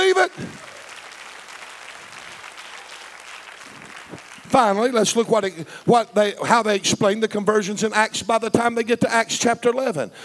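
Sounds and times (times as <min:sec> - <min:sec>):
crowd clapping hands in praise: 0:00.0 - 0:05.3
speech: 0:04.5 - 0:10.2.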